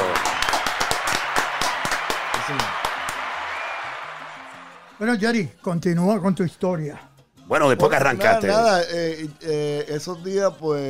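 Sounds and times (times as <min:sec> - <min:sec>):
audience applauding: 0:00.0 - 0:05.2
speech: 0:05.0 - 0:10.8.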